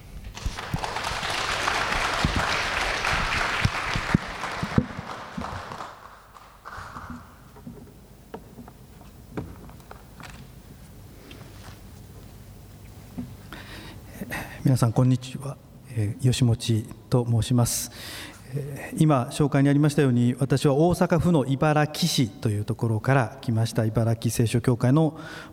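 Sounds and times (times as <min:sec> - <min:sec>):
crowd clapping welcoming speaker: 0:00.4 - 0:07.6
speech: 0:14.7 - 0:25.5.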